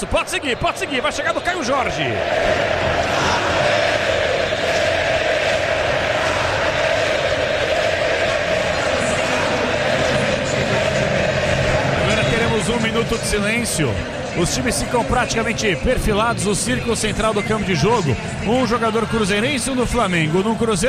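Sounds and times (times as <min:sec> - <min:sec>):
speech: 0:00.0 - 0:03.5, 0:12.6 - 0:20.8
football crowd chanting a player's name: 0:00.0 - 0:13.3.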